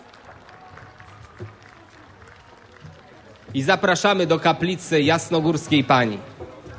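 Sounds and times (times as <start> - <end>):
applause welcoming a pilgrim group: 0.0 - 4.8
speech: 3.6 - 6.3.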